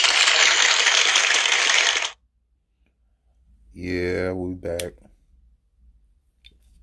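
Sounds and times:
crowd applause sound effect: 0.0 - 2.2
speech: 3.8 - 5.1.

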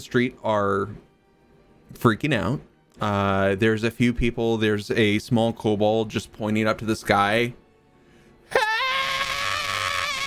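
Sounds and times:
speech: 0.0 - 1.1, 1.9 - 7.6
voice imitating a scream: 8.5 - 10.2.

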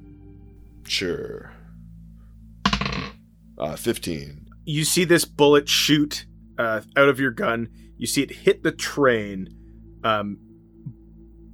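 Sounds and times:
speech: 0.9 - 1.6, 3.6 - 11.0
twenty-sided die rolling on a hard tabletop: 2.7 - 3.2.

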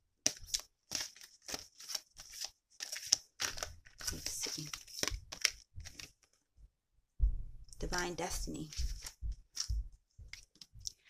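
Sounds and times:
card pulled from a deck rustling: 0.2 - 6.4, 8.6 - 10.8
speech: 7.8 - 8.9.

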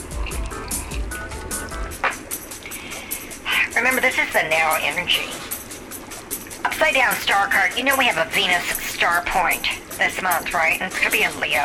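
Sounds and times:
person sipping tea from a cup: 0.0 - 1.8
speech: 3.8 - 5.5, 6.8 - 11.6.

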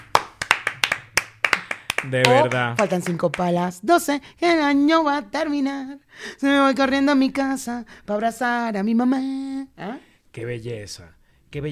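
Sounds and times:
hands clapping: 0.0 - 3.6
speech: 2.0 - 11.6.

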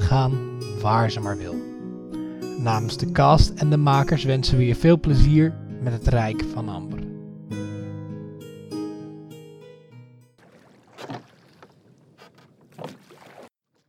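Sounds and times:
speech: 0.1 - 1.7, 2.6 - 7.6
water calmly lapping: 10.4 - 13.8
wood creaking: 10.4 - 13.8.

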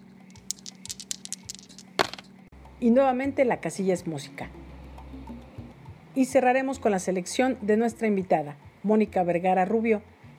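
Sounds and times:
two dice rattling as they're shaken: 0.3 - 2.2
speech: 2.8 - 4.6, 6.2 - 10.1.

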